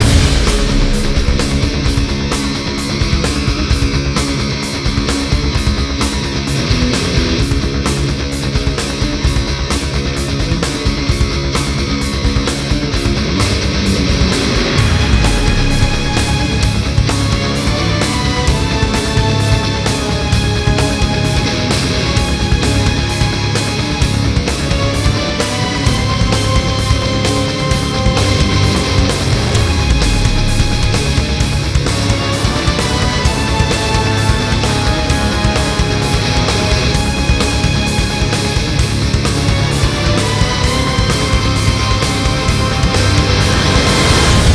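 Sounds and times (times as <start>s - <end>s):
guitar soundtrack: 0.0s - 44.5s.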